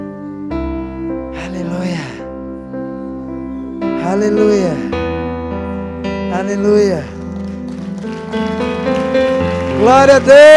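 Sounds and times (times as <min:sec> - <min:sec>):
speech: 0:04.1 - 0:05.1, 0:06.3 - 0:07.2, 0:08.3 - 0:08.7, 0:09.8 - 0:10.5
audience applauding: 0:07.0 - 0:10.5.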